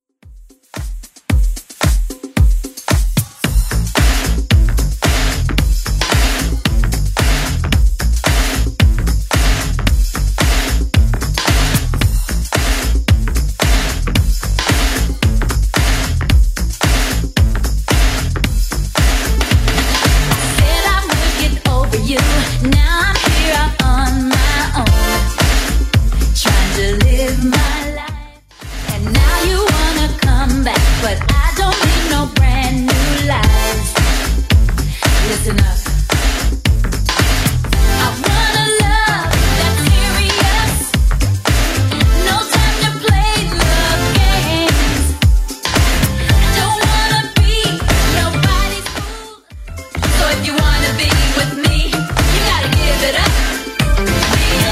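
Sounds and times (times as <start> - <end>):
80s club music: 0.4 - 54.6.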